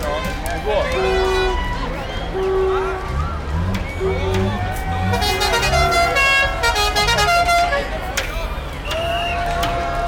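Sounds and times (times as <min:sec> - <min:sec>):
horns tooting and honking: 0:00.0 - 0:10.0
low rumble of vehicles: 0:00.0 - 0:10.0
russ parade crowd shouting and cheering on Karl Johan: 0:00.0 - 0:10.0
bright whistle-like tones: 0:08.7 - 0:09.6.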